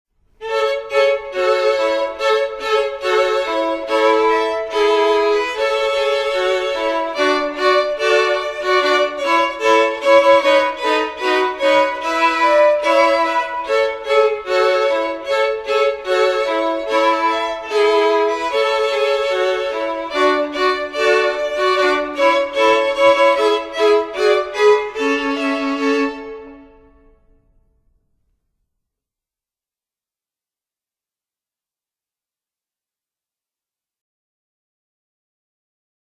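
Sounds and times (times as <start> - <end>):
violin melody: 0.4 - 27.3.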